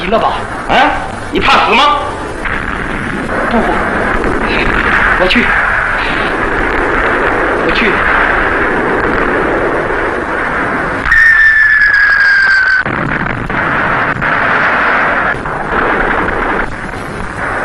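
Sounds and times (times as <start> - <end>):
speech: 0.1 - 2.2, 3.3 - 5.6, 7.7 - 8.2
artillery cannons firing: 0.4 - 17.6
high whistle of artillery fire: 11.0 - 12.9.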